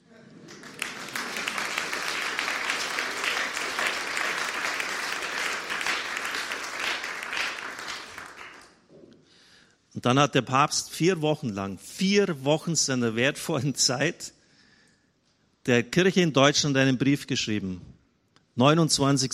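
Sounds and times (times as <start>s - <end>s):
sustained applause from a large audience: 0.4s - 8.8s
speech: 10.0s - 14.4s, 15.6s - 17.9s, 18.6s - 19.3s.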